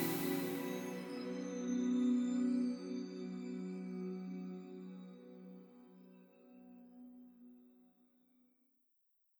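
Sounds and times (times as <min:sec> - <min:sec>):
tribal ambient music: 0:00.0 - 0:04.0.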